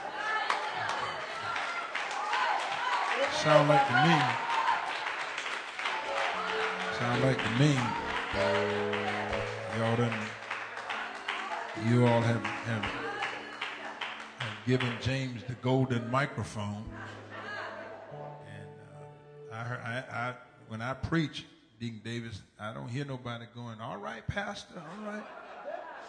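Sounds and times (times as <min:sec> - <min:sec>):
audience clapping: 0:00.0 - 0:15.8
speech: 0:03.2 - 0:04.5, 0:07.0 - 0:10.4, 0:11.8 - 0:13.1, 0:14.6 - 0:17.2, 0:19.8 - 0:25.4
laughter: 0:05.9 - 0:18.2, 0:24.6 - 0:26.0.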